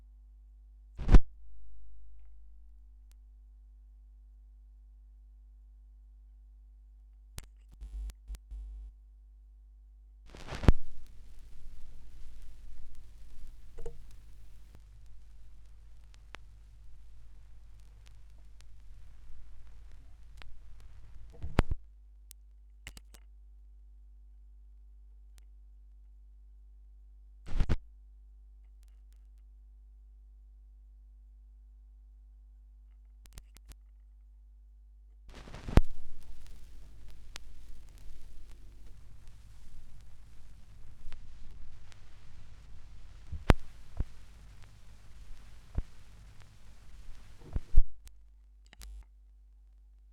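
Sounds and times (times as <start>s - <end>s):
vinyl record noise: 1.0s - 3.2s, 7.4s - 8.8s, 10.3s - 21.9s, 27.5s - 27.8s, 35.3s - 49.0s.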